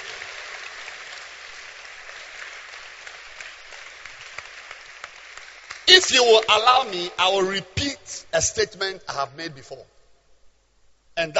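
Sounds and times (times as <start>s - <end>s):
audience clapping hands: 0.0s - 7.1s
speech: 6.0s - 9.9s, 11.2s - 11.3s.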